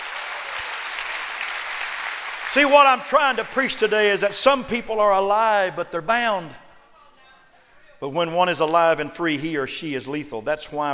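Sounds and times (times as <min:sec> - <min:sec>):
audience clapping: 0:00.0 - 0:04.3
speech: 0:02.5 - 0:06.6, 0:08.0 - 0:10.9.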